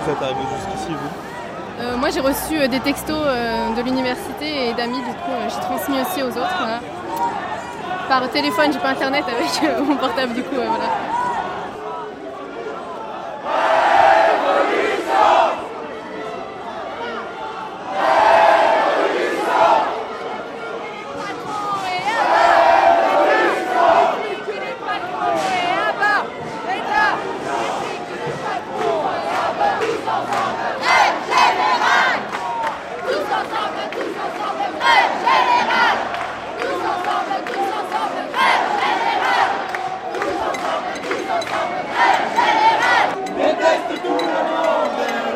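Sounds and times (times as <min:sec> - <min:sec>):
speech: 0:00.0 - 0:07.4, 0:08.1 - 0:11.2
protest crowd chanting at street demonstration: 0:00.0 - 0:45.3.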